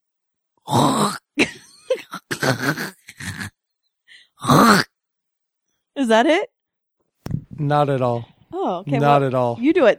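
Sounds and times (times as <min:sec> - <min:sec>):
person hawking throat: 0:00.7 - 0:01.4, 0:02.0 - 0:03.6, 0:04.4 - 0:04.9
speech: 0:02.5 - 0:03.0, 0:06.1 - 0:06.5, 0:07.6 - 0:09.9.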